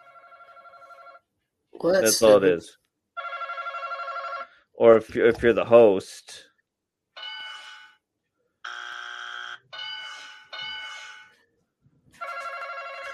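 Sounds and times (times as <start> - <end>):
speech: 1.8 - 2.8, 4.8 - 6.5
game show buzzer button: 8.7 - 11.3.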